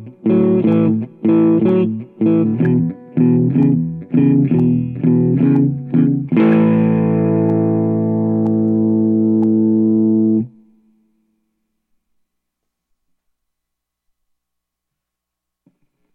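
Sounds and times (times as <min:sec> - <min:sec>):
blues music in A: 0:00.0 - 0:10.6.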